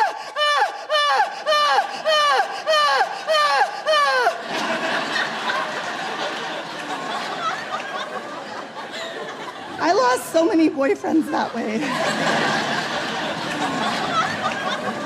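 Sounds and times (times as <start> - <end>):
person imitating loud melodramatic Greek-tragedy crying: 0.0 - 4.4
laughter: 0.0 - 15.0
speech: 10.4 - 12.6.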